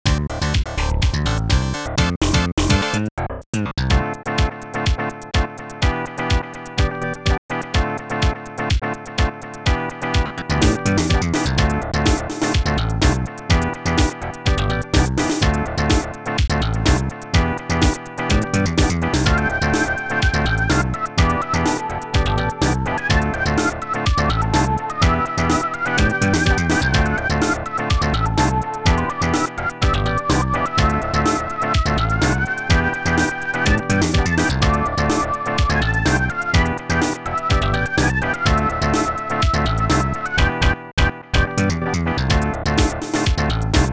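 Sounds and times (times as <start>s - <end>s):
keygen tracker music: 0.2s - 43.9s.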